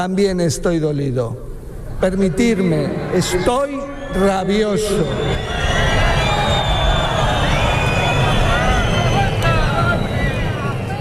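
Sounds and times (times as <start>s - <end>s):
speech: 0.0s - 5.8s
crowd booing and whistling at ceremony: 3.0s - 10.9s.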